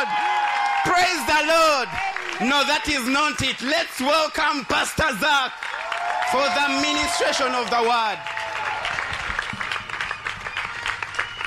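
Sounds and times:
audience clapping: 0.0s - 11.4s
speech: 0.8s - 5.7s, 6.3s - 8.3s.

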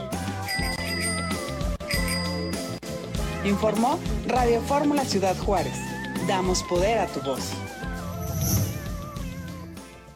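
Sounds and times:
upbeat music bed: 0.0s - 10.1s
bicycle bell ringing: 0.5s - 2.8s
speech: 3.4s - 7.8s.

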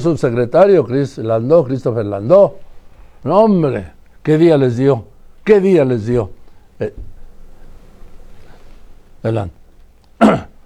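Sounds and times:
speech: 0.0s - 2.6s, 3.2s - 7.1s, 9.2s - 9.6s, 10.2s - 10.5s
sneezing: 10.2s - 10.6s.

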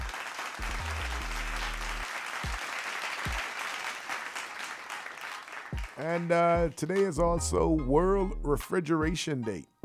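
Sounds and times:
round of applause from a crowd: 0.0s - 6.7s
speech: 6.0s - 9.7s.

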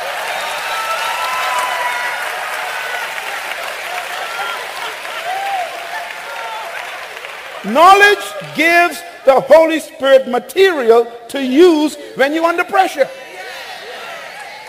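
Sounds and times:
audience clapping: 0.0s - 9.2s
speech: 7.6s - 13.2s.

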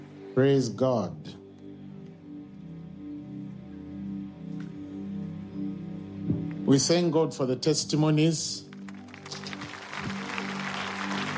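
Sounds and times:
speech: 0.4s - 1.4s, 6.7s - 8.7s
audience clapping: 8.6s - 11.3s.

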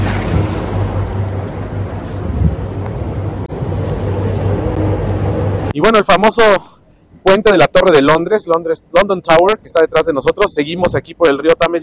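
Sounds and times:
river ferry splashing wash: 0.0s - 4.9s
gusts of wind buffeting the microphone: 0.0s - 5.7s
river ferry low engine drone: 0.0s - 11.8s
speech: 5.8s - 11.8s.

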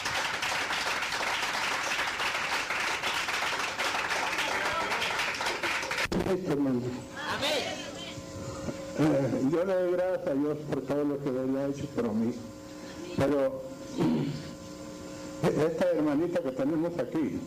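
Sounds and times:
audience applauding: 0.0s - 6.1s
speech: 6.3s - 7.6s, 9.0s - 12.5s, 13.2s - 14.1s, 15.4s - 17.4s.

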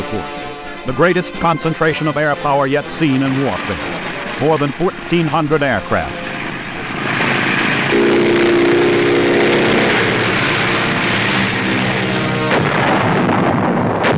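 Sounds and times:
speech: 0.1s - 6.2s
artillery blasting the enemy: 6.2s - 14.1s.

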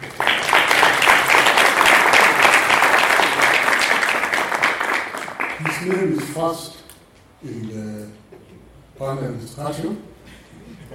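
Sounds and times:
audience clapping: 0.0s - 6.6s
speech: 5.8s - 6.8s, 7.4s - 8.2s, 9.0s - 10.1s.

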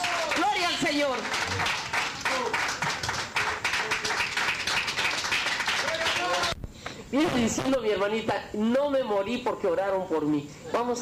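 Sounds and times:
audience clapping: 0.0s - 6.6s
speech: 0.9s - 1.8s, 7.1s - 10.9s.

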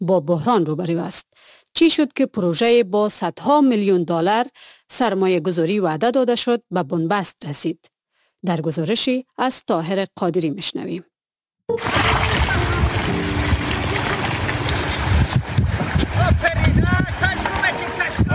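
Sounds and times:
speech: 0.0s - 11.1s, 11.7s - 12.3s
Amu river flowing: 11.8s - 18.2s.

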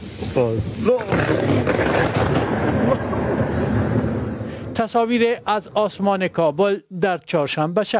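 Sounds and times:
speech: 0.2s - 3.1s, 4.8s - 7.9s
loud thunderclap from a lightning strike: 0.8s - 4.8s.

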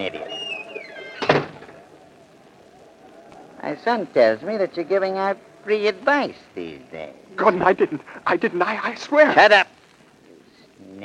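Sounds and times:
speech: 0.0s - 0.3s, 3.7s - 9.8s
door shutting in a ship captain's cabin: 1.2s - 1.7s.

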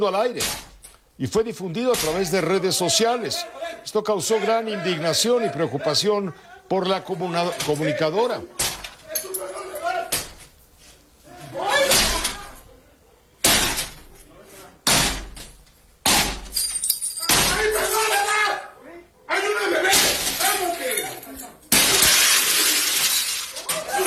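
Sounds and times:
armed men breaking down a house door: 0.0s - 1.0s, 1.9s - 2.4s, 8.6s - 9.4s, 10.0s - 10.6s, 11.7s - 12.6s, 13.4s - 14.2s, 14.8s - 18.2s, 19.8s - 24.0s
speech: 0.0s - 8.6s
laughter: 2.0s - 10.1s, 11.3s - 13.3s, 17.5s - 24.0s.

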